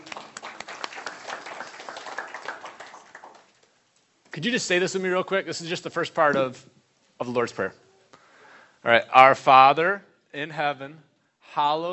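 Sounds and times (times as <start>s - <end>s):
crowd applauding: 0.0s - 3.8s
speech: 4.4s - 7.8s, 8.8s - 11.9s.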